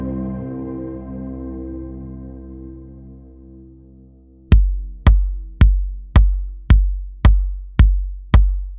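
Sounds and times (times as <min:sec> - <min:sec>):
bass drums: 0:04.5 - 0:08.7.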